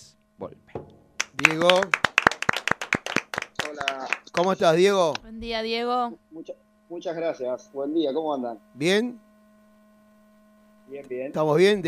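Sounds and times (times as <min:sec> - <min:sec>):
speech: 0:00.4 - 0:00.6, 0:01.4 - 0:02.0, 0:04.4 - 0:09.2, 0:10.9 - 0:11.8
audience applause: 0:01.2 - 0:04.6.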